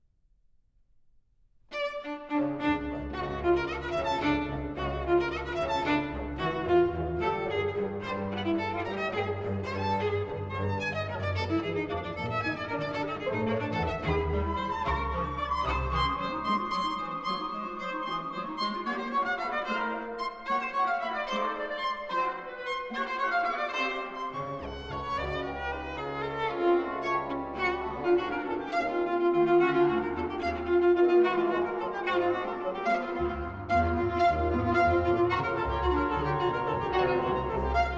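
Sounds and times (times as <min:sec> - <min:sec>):
viola and orchestra playing a brilliant allegro: 0:01.7 - 0:37.9.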